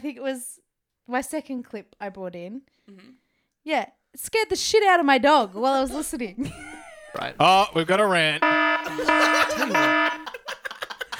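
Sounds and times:
speech: 0.0s - 10.0s
laughter: 6.4s - 11.1s
siren sound effect: 8.4s - 10.3s.

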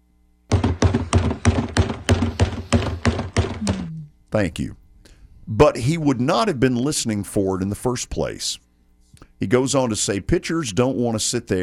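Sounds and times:
banging on a trash can: 0.5s - 3.8s
speech: 4.3s - 4.8s, 5.5s - 8.6s, 9.4s - 11.6s.

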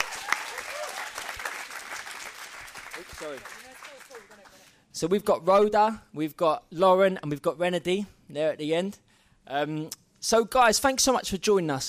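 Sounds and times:
audience applause: 0.0s - 4.6s
speech: 3.2s - 4.2s, 5.0s - 11.8s.

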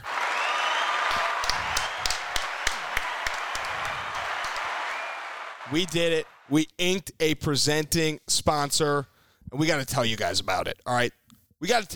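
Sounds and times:
applause sound effect: 0.0s - 6.5s
speech: 5.7s - 11.9s.

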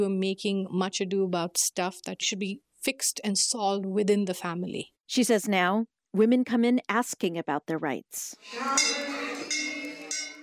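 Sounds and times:
speech: 0.0s - 9.7s
Hindu temple bells ringing in the Bay Area: 8.4s - 10.4s.

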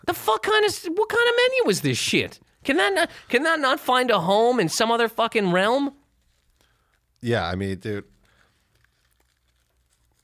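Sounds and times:
speech: 0.0s - 6.0s, 7.2s - 8.1s
rolling paper crinkling: 5.8s - 10.2s.

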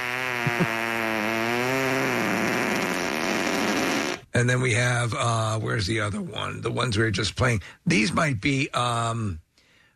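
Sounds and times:
fart sound effect: 0.0s - 4.3s
speech: 0.4s - 0.8s, 4.4s - 9.4s.

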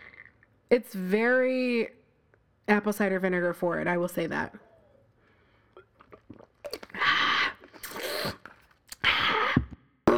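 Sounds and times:
speech: 0.7s - 2.0s, 2.7s - 4.7s
mouth clicks and smacks: 5.7s - 10.1s
someone drinking Wegmans store-brand kombucha, gulping and slurping: 5.8s - 10.1s.

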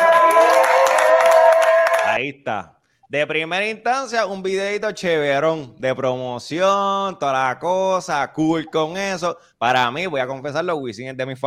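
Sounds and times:
crowd cheering: 0.0s - 2.2s
people clapping: 0.0s - 2.2s
speech: 2.2s - 11.4s.

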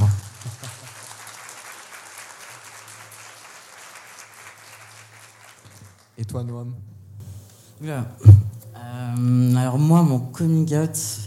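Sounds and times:
audience applause: 0.0s - 6.2s
speech: 6.2s - 6.9s, 7.8s - 11.2s.

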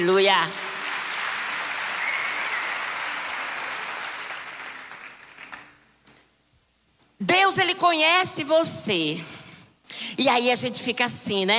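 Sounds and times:
speech: 0.0s - 0.6s, 7.2s - 9.4s, 10.2s - 11.5s
audience applause: 0.6s - 5.8s.

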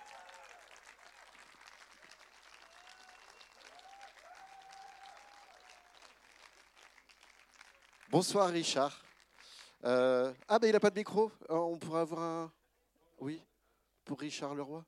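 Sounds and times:
audience applauding: 0.0s - 10.7s
speech: 8.1s - 9.0s, 9.8s - 12.6s, 13.2s - 13.5s, 14.1s - 14.8s.

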